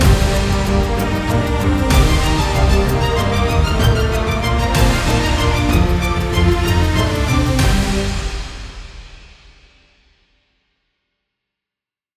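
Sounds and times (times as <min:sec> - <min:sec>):
cinematic music without vocals: 0:00.0 - 0:09.7.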